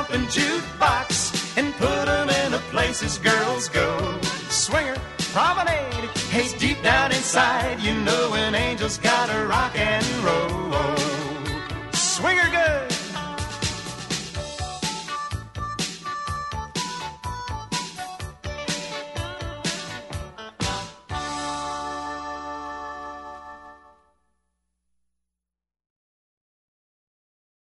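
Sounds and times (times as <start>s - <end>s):
rock n roll vocal: 0.0s - 14.1s
square dance music: 0.0s - 24.0s.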